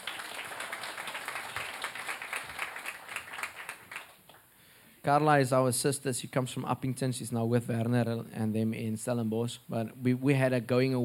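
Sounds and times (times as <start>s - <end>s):
small audience clapping: 0.0s - 4.5s
speech: 5.0s - 11.0s.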